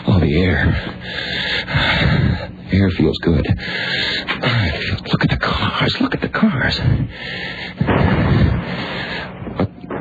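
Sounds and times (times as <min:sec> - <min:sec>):
speech: 0:00.3 - 0:09.0
gunfire in the distance: 0:07.8 - 0:10.0.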